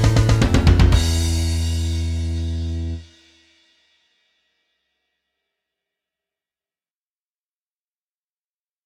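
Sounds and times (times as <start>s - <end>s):
guitar backing track at 120 BPM: 0.0s - 3.1s.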